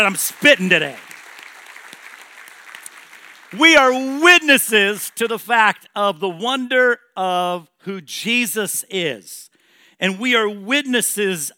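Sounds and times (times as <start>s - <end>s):
speech: 0.0s - 1.1s, 3.5s - 11.5s
audience applause: 0.0s - 3.8s.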